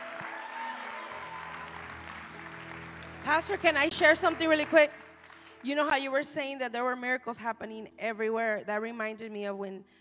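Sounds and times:
crowd clapping: 0.0s - 5.9s
speech: 3.3s - 5.0s, 5.6s - 10.0s.

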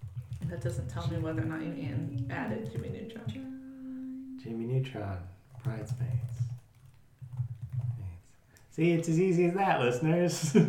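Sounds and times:
steady low hum: 0.0s - 6.5s
speech: 0.5s - 3.5s, 4.4s - 6.5s, 8.8s - 10.6s
keys clattering on a computer keyboard as names are typed into a list: 5.6s - 8.0s.

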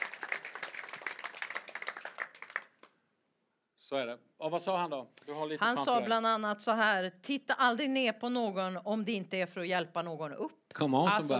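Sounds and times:
audience applause: 0.0s - 2.9s
speech: 3.9s - 11.3s.

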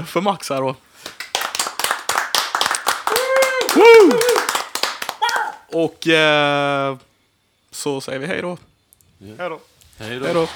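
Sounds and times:
speech: 0.0s - 1.2s, 3.8s - 4.4s, 5.7s - 7.1s, 7.7s - 10.5s
audience applause: 1.0s - 5.7s.

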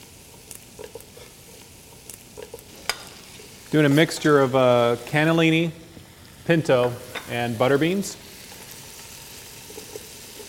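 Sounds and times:
stirring in a minestrone pot: 0.0s - 4.1s, 8.4s - 10.4s
faint sizzle: 0.0s - 10.4s
speech: 3.7s - 5.8s, 6.5s - 8.2s.

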